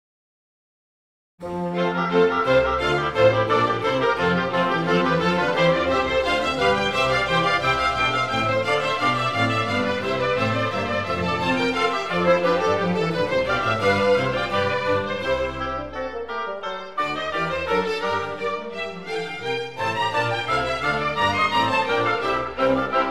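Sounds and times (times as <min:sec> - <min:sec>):
classical concerto in F major: 0:01.4 - 0:23.0.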